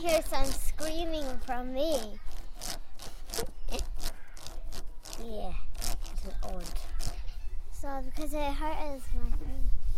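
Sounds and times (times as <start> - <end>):
speech: 0.0 - 2.8, 5.2 - 6.9, 7.8 - 9.8
wood rubbing on wood: 0.0 - 7.4.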